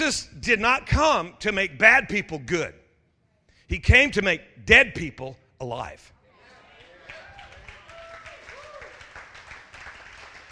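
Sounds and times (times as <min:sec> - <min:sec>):
speech: 0:00.0 - 0:02.8, 0:03.7 - 0:06.1
audience clapping: 0:06.7 - 0:10.5.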